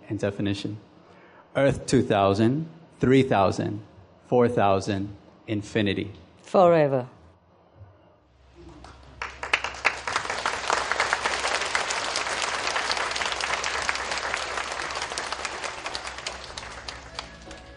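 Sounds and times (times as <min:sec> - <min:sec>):
speech: 0:00.1 - 0:00.9, 0:01.5 - 0:07.2
crowd applauding: 0:08.7 - 0:17.7.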